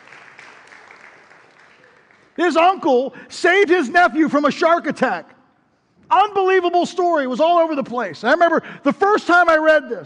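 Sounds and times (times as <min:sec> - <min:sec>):
audience clapping: 0:00.0 - 0:03.1
speech: 0:02.4 - 0:05.3, 0:06.1 - 0:10.0.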